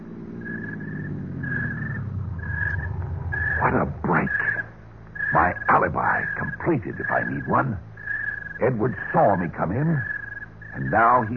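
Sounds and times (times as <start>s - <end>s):
car driving up and stopping: 0.4s - 5.3s
speech: 5.4s - 7.9s, 8.6s - 10.1s, 10.8s - 11.3s.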